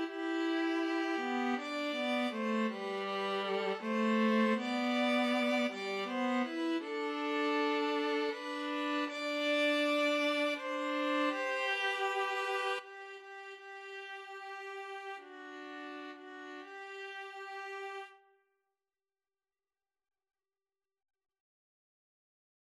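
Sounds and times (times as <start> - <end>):
two violins and viola playing a folk song: 0.0 - 18.2.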